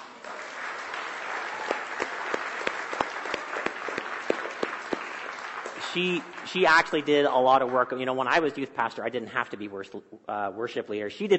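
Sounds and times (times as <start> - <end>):
church congregation applauding: 0.0 - 8.4
speech: 6.0 - 11.3.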